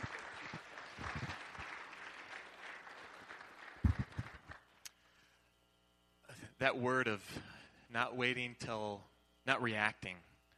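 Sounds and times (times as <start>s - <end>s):
round of applause: 0.0s - 4.8s
speech: 6.6s - 10.3s.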